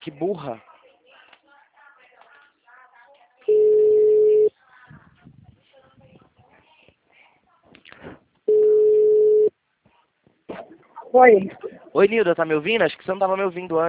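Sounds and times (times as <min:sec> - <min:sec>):
speech: 0:00.1 - 0:00.7, 0:11.1 - 0:13.8
telephone tone after a dropped phone call: 0:03.5 - 0:04.5, 0:08.5 - 0:09.5.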